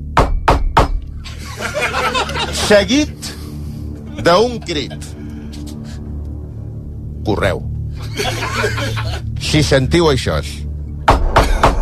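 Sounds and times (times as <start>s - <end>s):
laughter: 1.2s - 3.1s, 4.1s - 6.0s, 8.0s - 9.4s
speech: 2.7s - 3.4s, 4.2s - 5.2s, 7.2s - 10.6s
knocking on a door: 11.0s - 11.7s.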